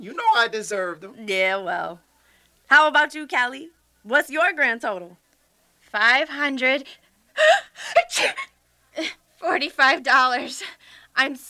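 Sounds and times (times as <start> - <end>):
speech: 0.0 - 2.1, 2.7 - 5.2, 5.9 - 11.4
sneeze: 8.0 - 8.6.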